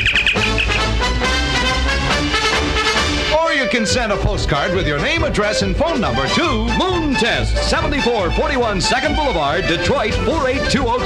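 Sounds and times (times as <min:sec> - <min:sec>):
radio station contest electronic chirping signal: 0:00.0 - 0:00.9
loud music: 0:00.0 - 0:11.0
speech: 0:03.7 - 0:11.0.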